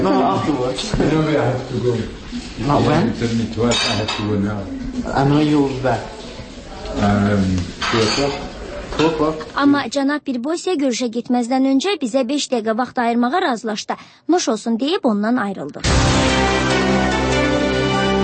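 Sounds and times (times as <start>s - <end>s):
speech: 0.0s - 6.2s, 7.0s - 17.1s
dishes and cutlery clinking during a lunch meal in a kitchen: 3.6s - 4.5s, 7.8s - 9.3s.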